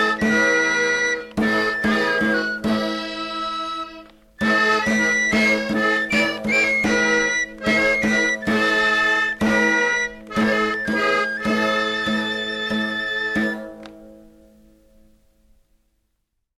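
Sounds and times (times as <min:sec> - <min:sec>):
accordion: 0:00.0 - 0:14.1.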